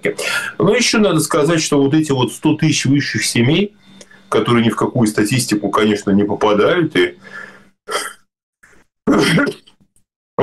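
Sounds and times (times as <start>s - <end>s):
speech: 0.1s - 7.5s, 9.2s - 9.6s
breathy sneezes: 9.1s - 9.7s.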